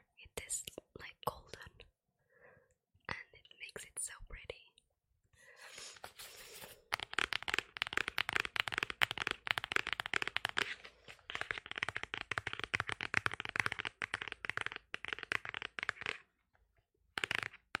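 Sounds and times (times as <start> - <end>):
hardcover notebooks being tapped: 6.9 - 16.3, 17.2 - 17.7.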